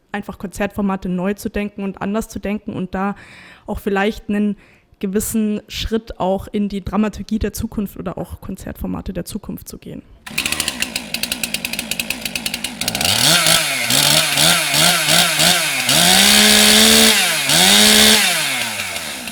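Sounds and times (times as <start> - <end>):
speech: 0.1 - 10.4
chainsaw carving a Mozart statue from a wooden log in Würzburg: 10.3 - 19.2.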